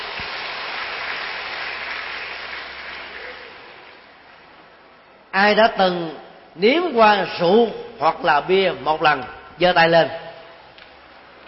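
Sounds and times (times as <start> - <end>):
audience applause: 0.0 - 4.1
speech: 5.4 - 10.2.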